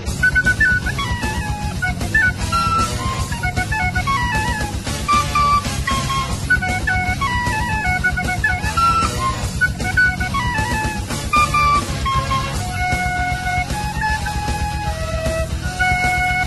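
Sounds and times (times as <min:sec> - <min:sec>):
out-of-tune flute: 0:00.1 - 0:16.4.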